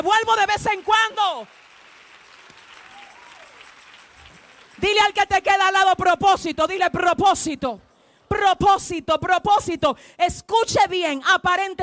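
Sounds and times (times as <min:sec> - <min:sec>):
speech: 0:00.0 - 0:01.6, 0:04.8 - 0:11.8
audience applause: 0:00.7 - 0:04.8.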